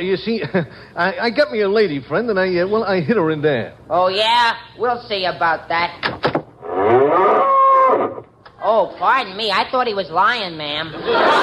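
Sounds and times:
speech: 0.0 - 6.1, 8.7 - 11.4
cow mooing: 6.6 - 8.2
laughter: 10.9 - 11.4.

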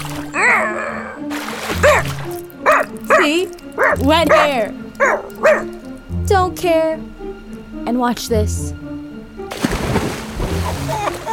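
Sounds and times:
sloshing and churning water: 0.0 - 6.1, 9.4 - 11.3
splash of someone jumping into water beside a raft: 1.3 - 2.4, 9.5 - 11.3
speech: 3.3 - 5.7, 6.3 - 7.1, 7.9 - 8.8.

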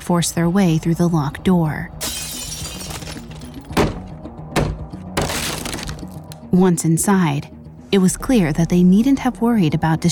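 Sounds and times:
speech: 0.1 - 2.1, 6.5 - 10.1
brick smashing through a glass window: 2.0 - 4.1, 5.2 - 6.0.

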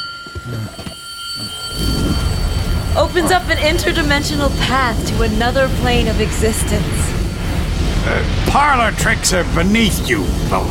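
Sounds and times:
magical bell ringing: 0.0 - 7.8
speech: 0.4 - 1.9, 3.0 - 7.1, 7.8 - 10.6.

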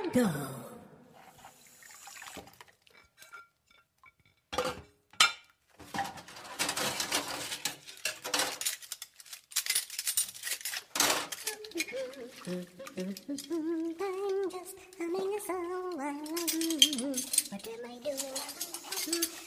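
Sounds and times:
speech: 0.1 - 0.6
running water in a sink: 1.2 - 3.8, 10.8 - 19.4
plates and cutlery clinking in a sink: 2.9 - 13.7, 16.2 - 19.4.

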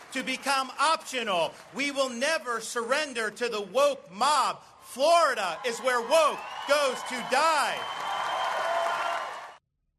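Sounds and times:
crowd applauding and cheering at a campaign rally: 0.0 - 2.6, 4.9 - 9.6
speech: 0.1 - 8.0.

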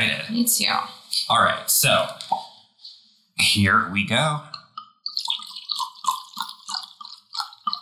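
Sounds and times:
speech: 0.0 - 2.4, 3.4 - 4.6
wine glugging and splashing into a glass: 5.1 - 7.8.

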